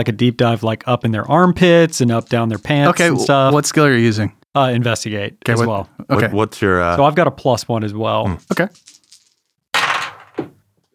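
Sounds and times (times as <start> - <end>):
speech: 0.0 - 8.9
dice tumbling off a table: 8.6 - 10.4.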